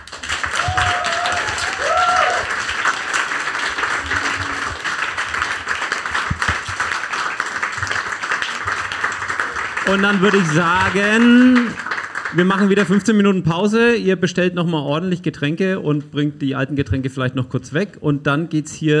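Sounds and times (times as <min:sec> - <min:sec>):
live audience applause: 0:00.0 - 0:12.9
speech: 0:09.9 - 0:18.9.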